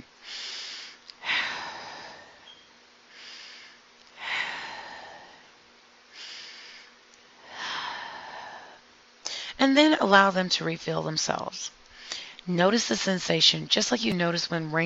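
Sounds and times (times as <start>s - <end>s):
slow deep breathing out in a meditation exercise: 0.2s - 9.5s
speech: 9.6s - 11.8s, 12.5s - 14.8s.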